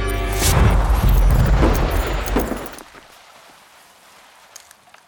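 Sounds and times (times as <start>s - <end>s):
wooden floorboards splintering as a whole building collapses: 0.1s - 2.9s.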